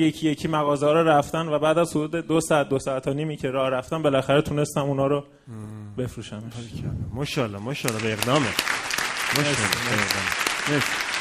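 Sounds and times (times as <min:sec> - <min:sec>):
speech: 0:00.0 - 0:11.0
audience applause: 0:07.8 - 0:11.1.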